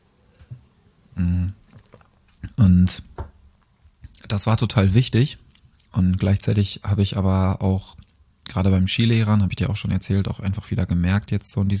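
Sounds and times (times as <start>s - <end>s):
speech: 1.2s - 1.6s, 2.6s - 3.2s, 4.3s - 11.7s
person taking a quick sip of a drink: 1.3s - 2.6s.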